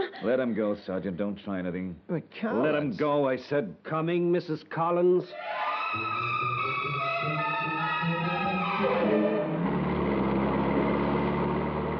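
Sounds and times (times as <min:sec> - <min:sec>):
speech: 0:00.2 - 0:08.2
car engine driving off: 0:07.8 - 0:11.9.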